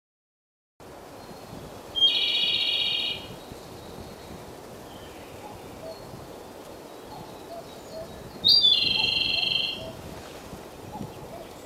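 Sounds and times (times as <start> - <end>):
Japanese robin singing loud high trilled phrases: 2.0 - 3.3, 7.6 - 10.0.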